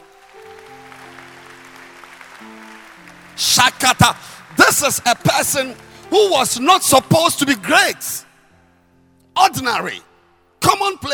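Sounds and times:
audience clapping: 0:00.0 - 0:06.7
speech: 0:03.4 - 0:08.3, 0:09.4 - 0:10.1, 0:10.8 - 0:11.1.

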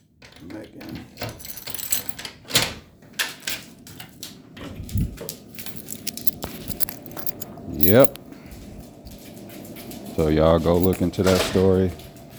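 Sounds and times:
speech: 0:00.4 - 0:01.3, 0:07.8 - 0:08.2, 0:10.2 - 0:12.0
keys jangling: 0:01.2 - 0:02.4, 0:04.8 - 0:08.2, 0:09.2 - 0:11.5.

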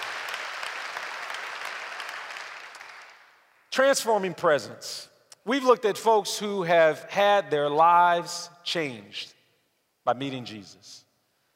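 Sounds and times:
audience applause: 0:00.0 - 0:03.4
speech: 0:03.8 - 0:09.4, 0:10.1 - 0:11.0.

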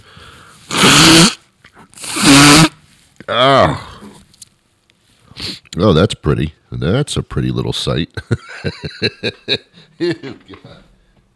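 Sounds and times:
person blowing nose: 0:00.0 - 0:03.0, 0:05.3 - 0:05.6
speech: 0:03.2 - 0:03.9, 0:05.4 - 0:10.9.

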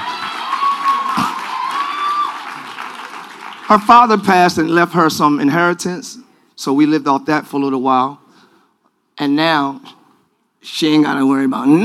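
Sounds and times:
audience clapping: 0:00.0 - 0:04.6
speech: 0:03.7 - 0:08.2, 0:09.2 - 0:10.0, 0:10.6 - 0:11.8.

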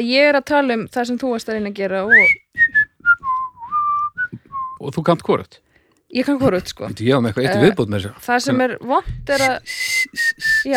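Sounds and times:
speech: 0:00.0 - 0:02.7, 0:04.8 - 0:10.7
person whistling: 0:02.1 - 0:04.8, 0:09.3 - 0:10.7.

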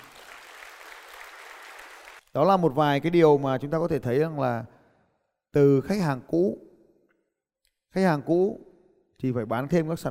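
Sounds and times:
crowd clapping: 0:00.0 - 0:02.3
speech: 0:02.4 - 0:04.8, 0:05.5 - 0:06.7, 0:07.9 - 0:10.1.

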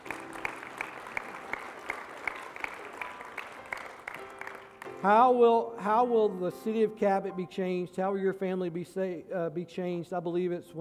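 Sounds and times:
audience clapping: 0:00.0 - 0:05.2
speech: 0:05.0 - 0:10.7.

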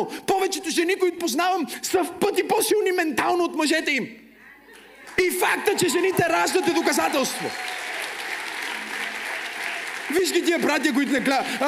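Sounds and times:
speech: 0:00.0 - 0:04.2, 0:05.2 - 0:07.8, 0:10.1 - 0:11.6
audience applause: 0:05.1 - 0:11.6.

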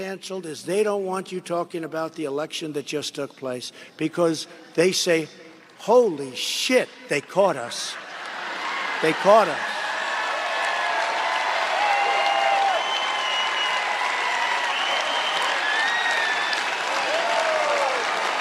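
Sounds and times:
speech: 0:00.1 - 0:08.0, 0:09.0 - 0:09.8
large crowd applauding: 0:08.1 - 0:18.4
whistles: 0:12.1 - 0:14.0, 0:14.6 - 0:16.8.

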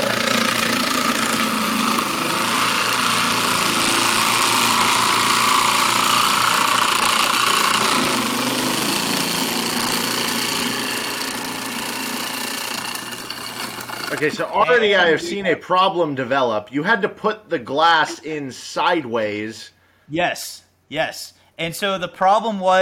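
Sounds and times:
ice machine dispensing ice: 0:00.0 - 0:14.4
speech: 0:14.2 - 0:22.8.

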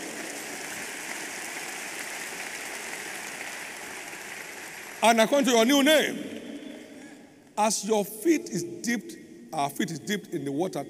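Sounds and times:
audience clapping in praise: 0:00.0 - 0:05.7
speech: 0:05.0 - 0:06.3, 0:07.6 - 0:10.8.

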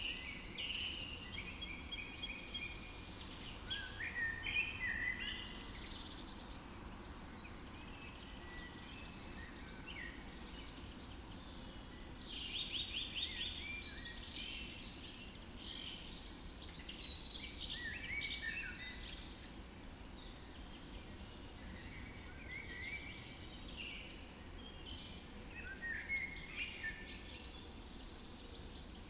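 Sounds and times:
birds dawn chorus: 0:00.0 - 0:29.0.

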